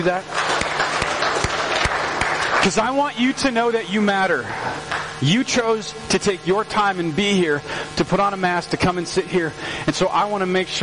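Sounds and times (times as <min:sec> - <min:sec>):
speech: 0:00.0 - 0:00.4, 0:02.6 - 0:10.8
audience applause: 0:00.0 - 0:03.0.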